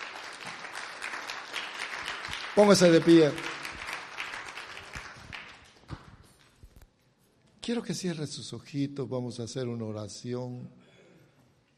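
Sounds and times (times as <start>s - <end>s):
audience applause: 0.0s - 6.1s
speech: 2.6s - 3.5s, 7.7s - 10.8s.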